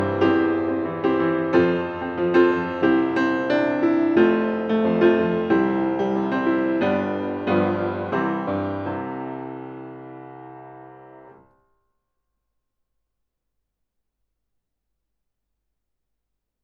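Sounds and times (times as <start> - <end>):
piano outside: 0.0 - 11.6.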